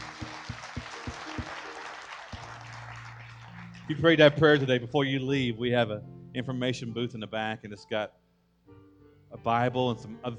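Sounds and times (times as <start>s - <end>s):
church congregation clapping after a prayer at a service: 0.0s - 4.8s
speech: 3.9s - 8.2s, 9.3s - 10.3s.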